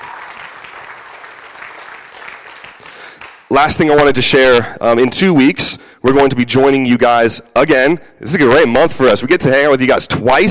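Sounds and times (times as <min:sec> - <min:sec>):
audience applause: 0:00.0 - 0:03.5
speech: 0:03.5 - 0:10.4.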